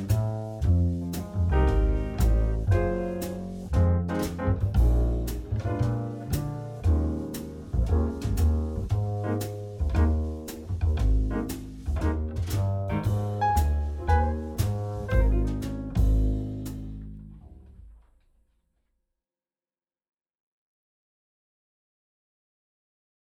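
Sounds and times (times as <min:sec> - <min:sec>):
relaxing evening jazz piano: 0:00.0 - 0:18.0.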